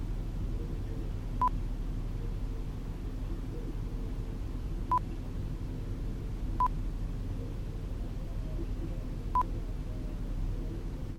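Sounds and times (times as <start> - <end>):
daytime hotel room ambience: 0.0 - 11.1.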